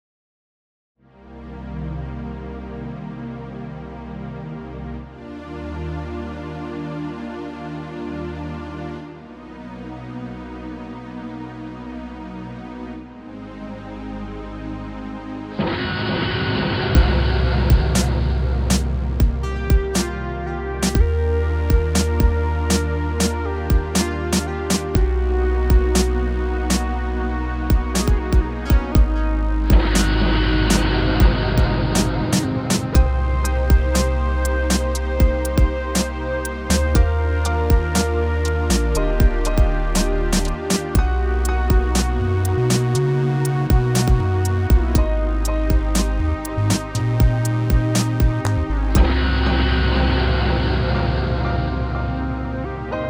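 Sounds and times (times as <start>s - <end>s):
analog laser synth: 15.6s - 52.9s.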